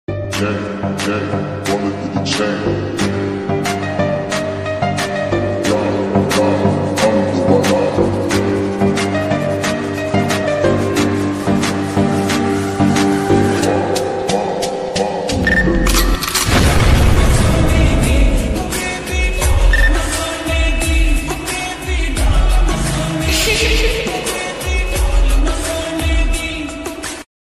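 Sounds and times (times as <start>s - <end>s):
attitude background music: 0.1s - 27.3s.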